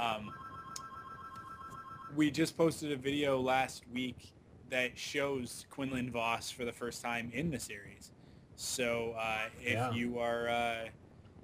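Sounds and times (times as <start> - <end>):
speech: 0.0 - 0.5, 2.1 - 11.0
phone ringing: 0.2 - 2.2.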